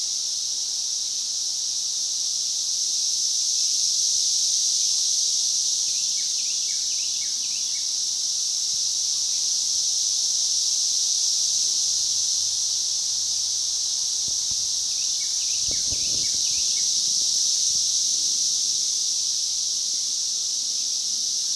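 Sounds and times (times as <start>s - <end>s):
cicada continuous high hissing whine: 0.0s - 21.5s.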